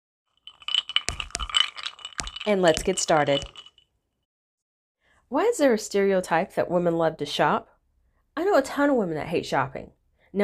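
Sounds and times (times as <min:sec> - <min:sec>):
ice clinking in a highball glass: 0:00.4 - 0:03.8
speech: 0:02.4 - 0:03.6, 0:05.3 - 0:07.7, 0:08.4 - 0:10.4.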